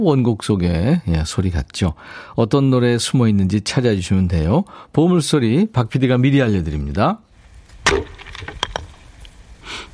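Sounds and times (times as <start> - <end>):
speech: 0.0 - 7.3, 7.9 - 8.6
soft rustle: 7.3 - 9.9
firewood being split with an axe: 7.6 - 9.4
lighter woody knocks: 7.8 - 9.1.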